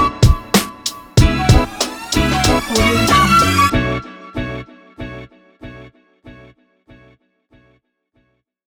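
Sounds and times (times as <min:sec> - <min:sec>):
hip hop street beat: 0:00.0 - 0:04.5.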